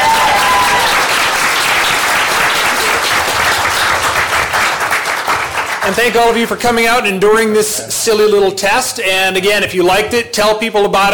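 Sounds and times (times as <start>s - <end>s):
crowd applauding: 0.0s - 6.5s
speech: 5.9s - 11.1s.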